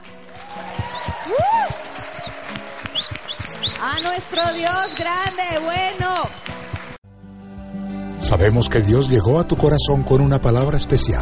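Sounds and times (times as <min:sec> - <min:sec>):
crowd applause: 0:00.0 - 0:07.0
speech: 0:03.8 - 0:06.5, 0:08.3 - 0:11.2.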